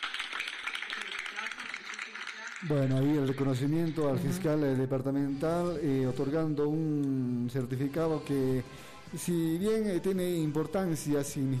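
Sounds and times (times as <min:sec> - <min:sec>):
audience clapping at a municipal council award ceremony: 0:00.0 - 0:04.2
speech: 0:02.6 - 0:11.5.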